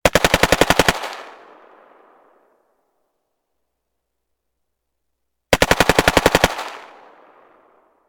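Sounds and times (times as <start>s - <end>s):
AK-47 gunshots: 0.0s - 2.4s, 5.5s - 7.9s.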